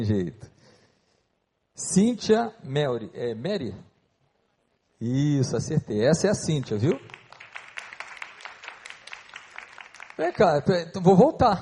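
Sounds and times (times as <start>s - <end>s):
speech: 0.0s - 0.5s, 1.8s - 3.9s, 5.0s - 7.2s, 10.2s - 11.6s
audience applause: 6.9s - 10.7s.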